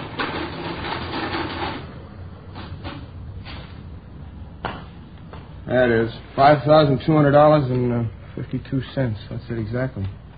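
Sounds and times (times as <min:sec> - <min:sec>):
mechanical adding machine totaling figures: 0:00.0 - 0:01.9
speech: 0:05.7 - 0:10.2.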